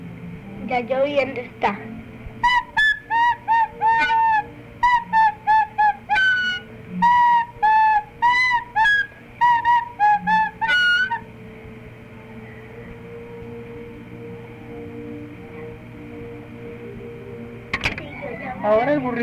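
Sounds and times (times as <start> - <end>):
speech: 0.7 - 2.0, 18.7 - 19.2
flute melody: 2.4 - 19.2.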